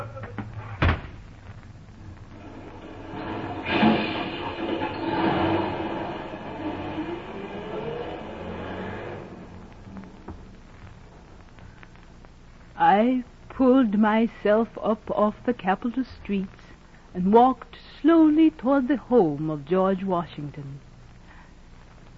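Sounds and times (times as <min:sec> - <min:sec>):
rumbling and clattering: 0:00.3 - 0:12.0
door slam: 0:00.6 - 0:01.3, 0:02.9 - 0:07.3
speech: 0:13.9 - 0:20.9.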